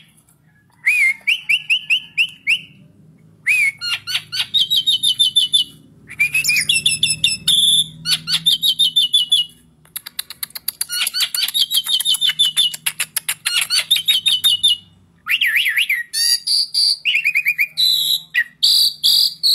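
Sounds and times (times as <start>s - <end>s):
Asian pied starling singing: 0.0s - 2.8s, 3.4s - 19.5s.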